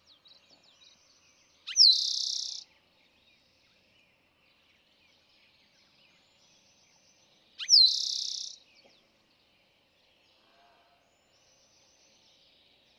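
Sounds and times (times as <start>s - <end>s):
Eastern Towhee singing: 1.7s - 2.7s, 7.6s - 8.6s.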